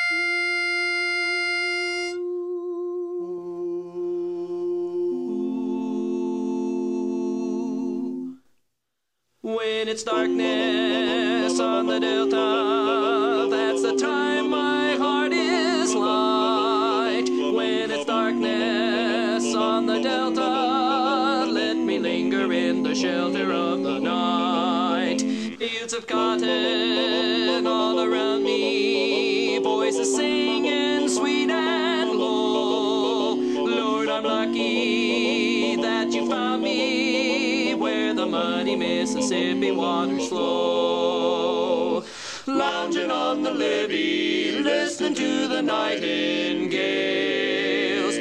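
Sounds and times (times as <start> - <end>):
lead vocal learning track: 0.1 - 8.6, 9.4 - 48.1.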